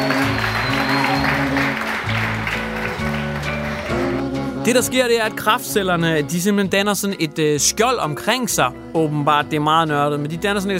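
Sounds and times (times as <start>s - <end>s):
audience applause: 0.0s - 4.2s
speech: 4.7s - 10.7s.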